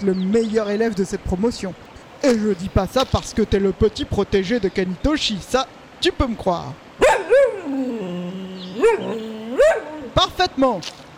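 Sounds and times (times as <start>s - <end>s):
speech: 0.0s - 8.0s, 8.8s - 11.0s
dog barking and whining: 7.0s - 10.2s.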